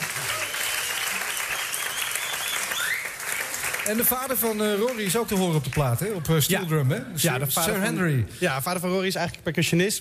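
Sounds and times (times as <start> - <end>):
audience applause: 0.0 - 6.1
speech: 3.9 - 10.0.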